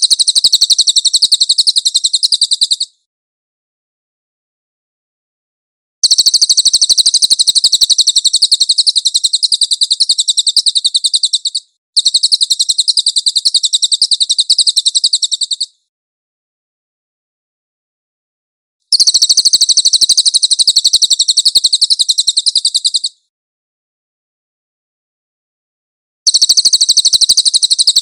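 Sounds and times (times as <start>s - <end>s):
cililin singing a high dense rattle: 0.0s - 3.1s, 6.0s - 15.9s, 18.9s - 23.3s, 26.3s - 28.0s.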